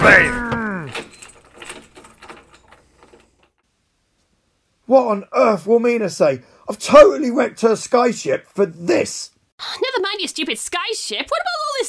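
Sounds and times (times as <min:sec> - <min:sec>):
speech: 0:00.0 - 0:00.4, 0:04.9 - 0:11.8
metal lock being fastened on a box used as a makeshift prison: 0:00.0 - 0:03.6.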